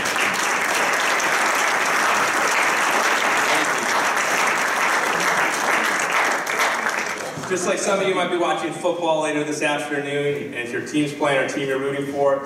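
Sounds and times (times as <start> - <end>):
people clapping: 0.0 - 7.8
speech: 7.5 - 12.4.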